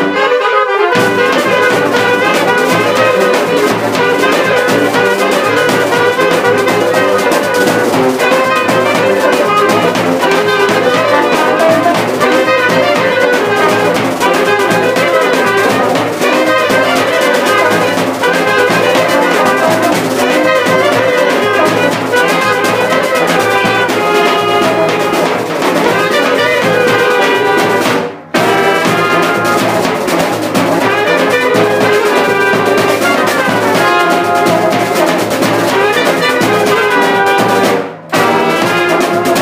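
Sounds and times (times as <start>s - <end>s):
Bulgarian wedding music break: 0.9s - 39.4s.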